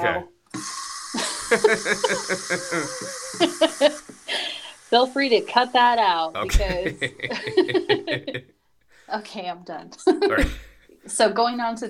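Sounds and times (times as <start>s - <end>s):
speech: 0.0s - 0.8s, 1.5s - 8.5s, 9.1s - 11.8s
water bottle being filled with water: 0.5s - 6.3s
laughter: 1.2s - 4.0s, 6.4s - 8.4s.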